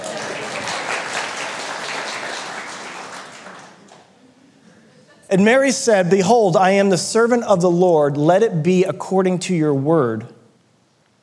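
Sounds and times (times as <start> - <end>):
audience applause: 0.0 - 4.2
speech: 5.3 - 10.4.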